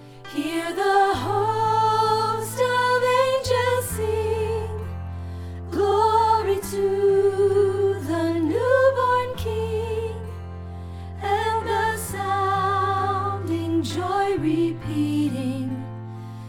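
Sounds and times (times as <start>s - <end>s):
soprano singing in a gospel choir: 0.0s - 16.4s.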